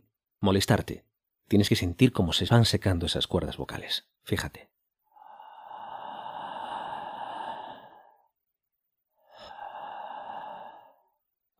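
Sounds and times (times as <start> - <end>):
speech: 0.4 - 4.7
slow deep breathing in a voice-lowering exercise: 5.0 - 11.5.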